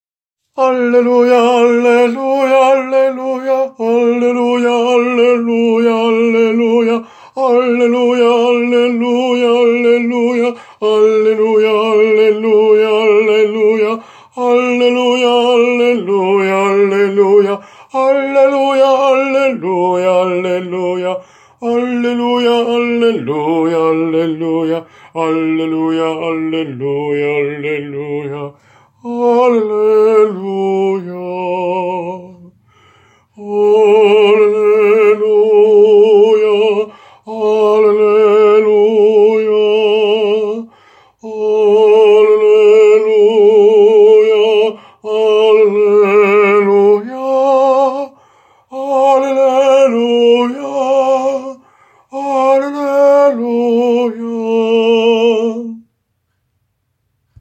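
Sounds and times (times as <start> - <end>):
tenor singing: 0.5 - 32.6, 33.2 - 55.9.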